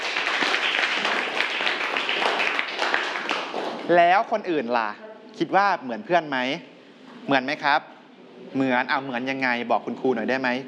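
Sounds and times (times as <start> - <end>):
group of students clapping together: 0.0 - 4.1
speech: 3.9 - 10.6.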